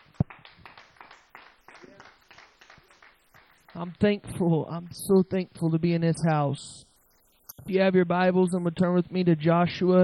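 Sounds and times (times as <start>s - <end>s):
audience hand clapping: 0.0s - 4.1s
speech: 3.8s - 6.9s, 7.7s - 10.0s.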